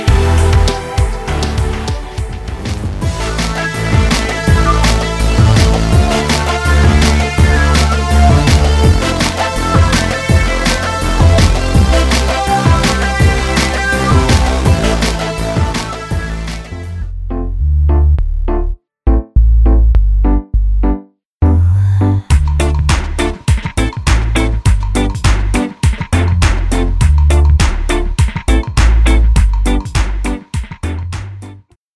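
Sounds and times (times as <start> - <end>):
electronic lounge club mix: 0.0 - 21.6, 22.3 - 31.7.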